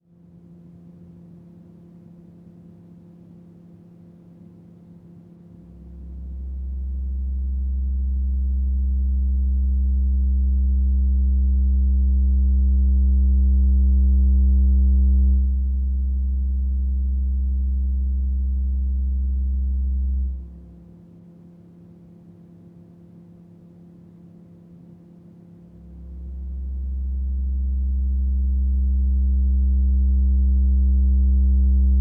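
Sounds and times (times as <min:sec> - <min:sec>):
bass: 0:05.6 - 0:21.2, 0:25.7 - 0:31.9.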